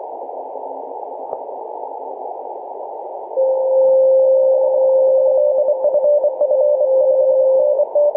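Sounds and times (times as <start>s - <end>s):
CW Morse code on 14.020 MHz: 3.4s - 8.1s.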